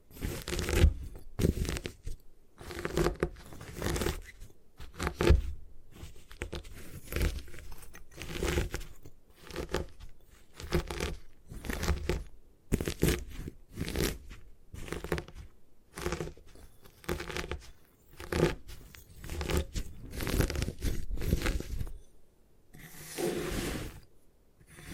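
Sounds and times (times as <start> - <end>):
gym chalk crushed and crumbled: 0.1 - 22.1, 22.8 - 24.9.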